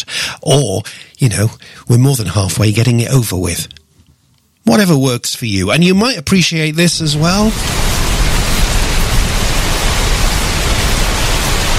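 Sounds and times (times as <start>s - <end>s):
speech: 0.3s - 3.8s, 4.6s - 7.9s
rain falling: 7.0s - 11.7s.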